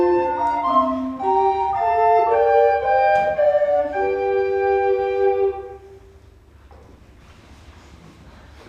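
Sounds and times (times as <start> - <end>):
music piece: 0.0 - 6.4.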